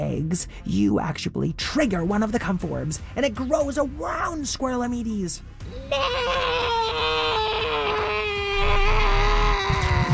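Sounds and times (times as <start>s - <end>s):
speech: 0.1s - 6.8s
man screaming: 5.8s - 10.1s.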